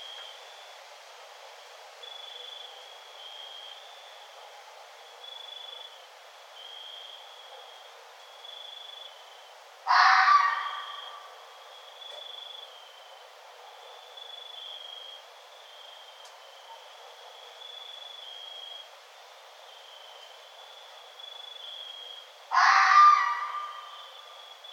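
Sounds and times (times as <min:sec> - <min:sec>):
red fox calling: 0:09.9 - 0:11.4, 0:22.5 - 0:24.3.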